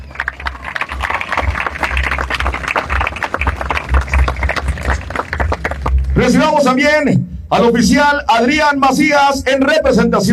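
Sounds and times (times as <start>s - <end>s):
crowd applauding: 0.0s - 6.5s
low hum: 0.0s - 7.6s
speech: 6.3s - 10.3s.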